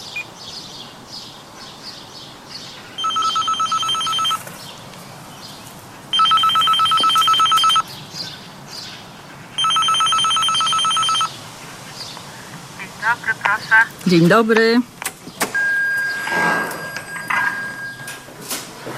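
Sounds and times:
faint birdsong: 0:00.0 - 0:18.3
electric doorbell ringing: 0:03.0 - 0:04.4, 0:06.2 - 0:07.8, 0:09.6 - 0:11.3, 0:15.6 - 0:18.3
speech: 0:14.1 - 0:14.9.

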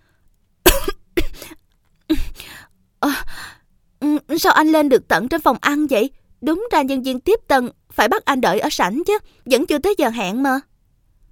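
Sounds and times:
person coughing: 0:00.7 - 0:02.4
speech: 0:04.4 - 0:10.7.

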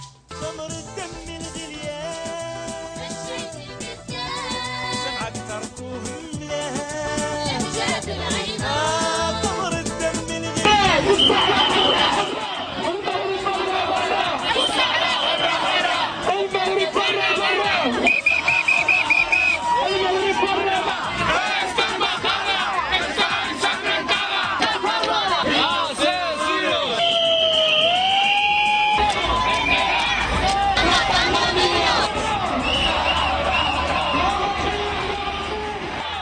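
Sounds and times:
crowd of Sahrawi and Spanish protesters shouting and chanting in front of the Moroccan embassy in Madrid: 0:02.2 - 0:05.7, 0:06.8 - 0:36.2
crowd babble: 0:07.5 - 0:36.2.

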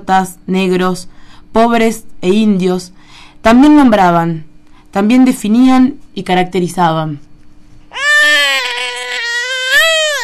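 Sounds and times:
speech: 0:00.0 - 0:07.3
baby crying: 0:07.9 - 0:10.2.

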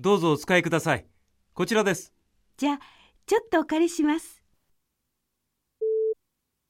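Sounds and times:
speech: 0:00.0 - 0:04.4
telephone call tone: 0:05.8 - 0:06.2.

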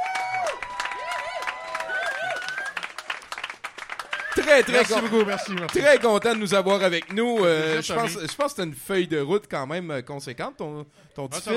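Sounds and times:
audience applause: 0:00.0 - 0:08.5
speech: 0:04.4 - 0:11.5.

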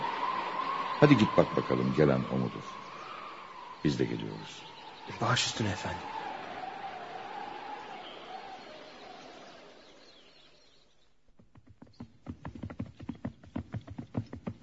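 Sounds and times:
speech: 0:01.0 - 0:02.8, 0:03.8 - 0:06.2
hoofbeats of a horse carrying an approaching rider: 0:11.3 - 0:14.6.

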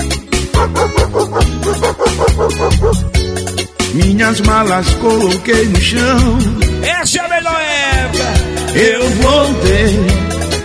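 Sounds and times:
dog barking samples in electronic dance music: 0:00.4 - 0:03.2
speech: 0:00.6 - 0:01.0, 0:03.9 - 0:10.4.

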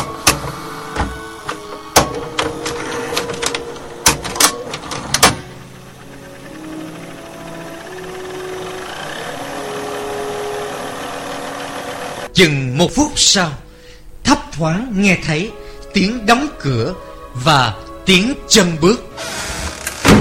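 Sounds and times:
blank cassette tape running in player: 0:00.0 - 0:12.3, 0:19.1 - 0:20.1
speech: 0:12.4 - 0:13.6, 0:14.6 - 0:19.4.

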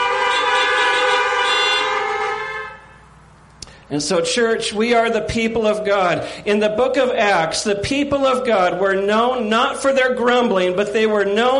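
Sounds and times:
car horns honking: 0:00.0 - 0:03.2
speech: 0:03.9 - 0:11.5.

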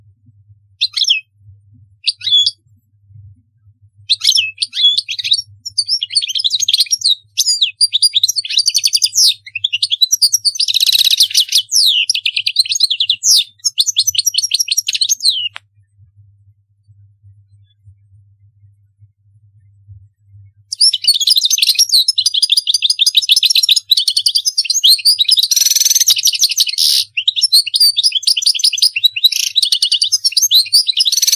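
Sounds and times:
faint low hum: 0:00.0 - 0:21.0
European goldfinch song: 0:02.0 - 0:02.6, 0:04.1 - 0:15.6, 0:20.7 - 0:31.3.

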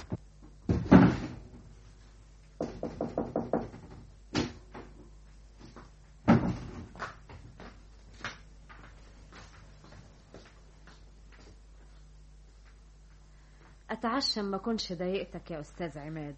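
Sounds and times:
wooden door opened and shut roughly, thumping and rattling: 0:00.7 - 0:01.5, 0:02.6 - 0:04.6
speech: 0:14.0 - 0:16.3.

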